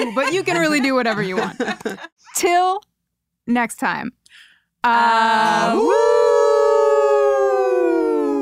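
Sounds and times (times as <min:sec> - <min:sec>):
laughter: 0:00.0 - 0:02.2
speech: 0:00.0 - 0:02.9, 0:03.5 - 0:06.2
people howling like wolves: 0:05.5 - 0:08.4.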